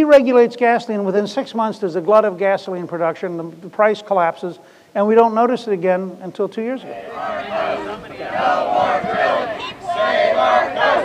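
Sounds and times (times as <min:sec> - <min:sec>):
speech: 0:00.0 - 0:11.0
crowd of protesters chanting in unison: 0:06.8 - 0:11.0.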